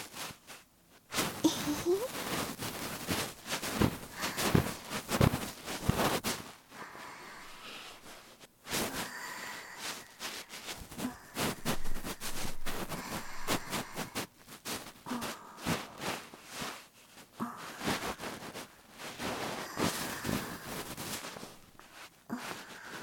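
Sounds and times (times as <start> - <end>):
ear massage recorded with binaural microphone: 0.0 - 23.0.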